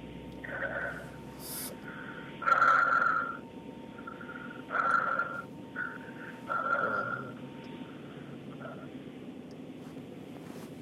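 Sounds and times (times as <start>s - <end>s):
heavy breathing in and out, done on instruction: 0.4s - 3.4s, 4.0s - 8.9s.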